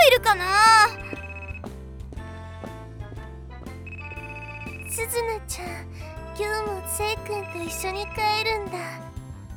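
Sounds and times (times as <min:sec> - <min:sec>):
speech: 0:00.1 - 0:00.9, 0:05.0 - 0:09.1
phone ringing with a melodic electronic ringtone: 0:00.9 - 0:01.7, 0:03.9 - 0:05.1, 0:06.9 - 0:09.0.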